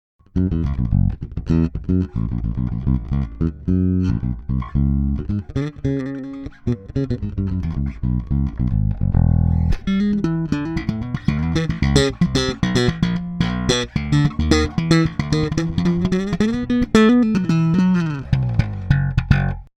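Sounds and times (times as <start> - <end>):
electric bass direct input: 0.2 - 19.7.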